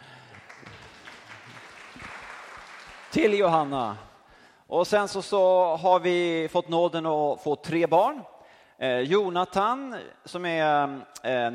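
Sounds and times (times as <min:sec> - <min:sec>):
audience applause: 0:00.0 - 0:03.6
speech: 0:03.1 - 0:04.1, 0:04.7 - 0:11.5.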